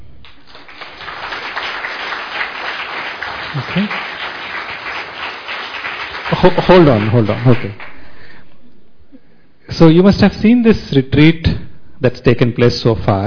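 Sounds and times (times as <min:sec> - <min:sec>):
audience clapping hands: 0:00.2 - 0:08.1
speech: 0:03.6 - 0:04.1, 0:06.4 - 0:07.9, 0:09.8 - 0:13.2.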